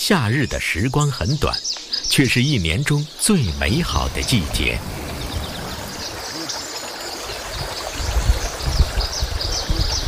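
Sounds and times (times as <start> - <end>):
speech: 0.1 - 5.1
clear river water from plateau snowmelt flowing: 1.6 - 10.0.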